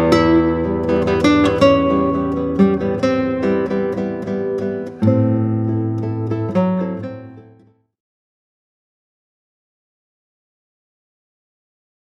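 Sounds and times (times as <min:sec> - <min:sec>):
prelude: 0:00.0 - 0:07.7.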